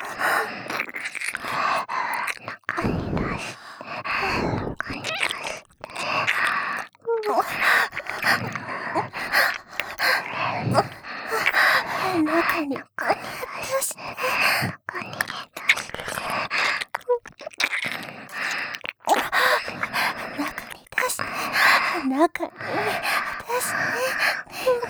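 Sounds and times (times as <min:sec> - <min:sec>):
ear licking: 0:00.0 - 0:24.8
person moaning: 0:02.8 - 0:03.5, 0:04.2 - 0:04.9.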